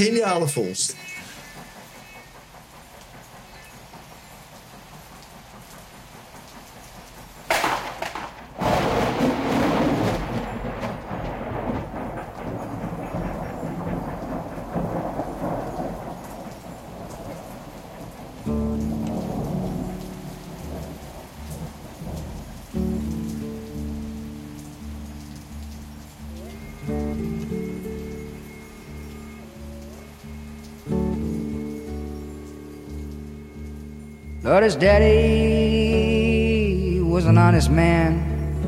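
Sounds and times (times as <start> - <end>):
speech: 0.0 - 1.3, 34.6 - 35.4, 37.2 - 38.2
hissing rain: 0.0 - 38.6
distant thunder: 0.9 - 36.6
music with sustained, harmonic tones: 14.7 - 38.6.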